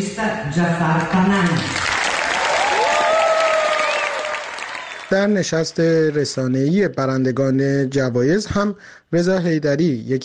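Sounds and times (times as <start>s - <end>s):
speech: 0.0s - 1.9s, 5.1s - 10.2s
standing ovation applause in festival hall: 1.6s - 6.2s.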